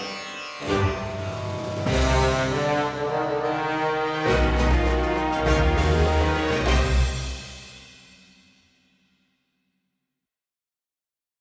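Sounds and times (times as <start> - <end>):
forest background music: 0.0 - 8.8.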